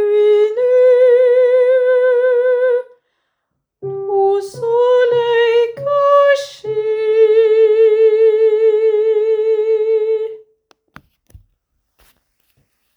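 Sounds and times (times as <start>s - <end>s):
alto voice singing: 0.0s - 3.0s, 3.8s - 10.5s.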